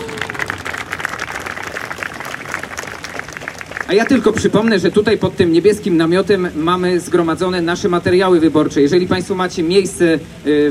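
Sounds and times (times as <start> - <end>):
audience applause at outdoor rally: 0.0 - 5.0
speech: 3.9 - 10.7.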